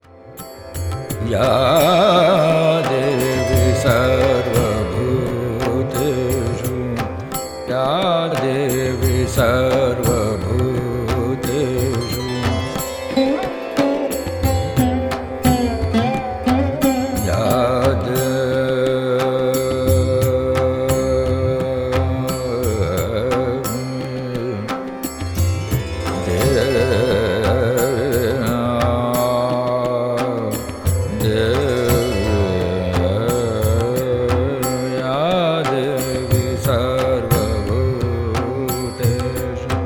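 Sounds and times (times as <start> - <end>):
stuti bhajan devotional song: 0.0 - 39.8.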